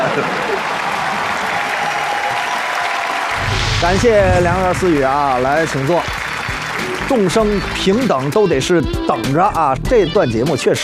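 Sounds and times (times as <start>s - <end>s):
audience applause: 0.0s - 8.1s
speech: 0.2s - 0.5s, 3.8s - 6.2s, 7.1s - 10.8s.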